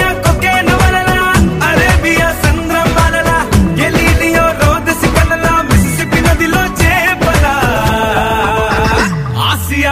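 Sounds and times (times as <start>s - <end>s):
ringtone: 0.1s - 9.8s.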